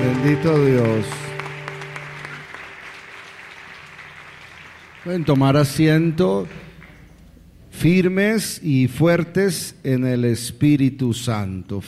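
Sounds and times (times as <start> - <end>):
audience applauding: 0.0 - 7.0
speech: 0.3 - 1.3, 5.0 - 6.7, 7.8 - 11.8.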